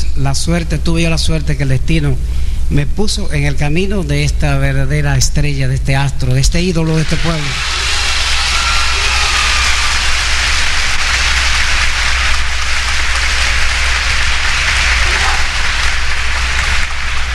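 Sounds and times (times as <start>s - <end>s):
speech: 0.2s - 7.8s
warm audience applause in a hall: 6.8s - 17.3s.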